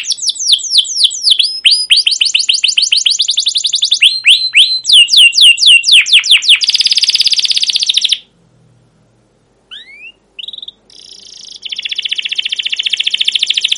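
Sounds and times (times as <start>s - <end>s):
canary chirping and trilling: 0.0s - 8.3s, 9.7s - 13.7s.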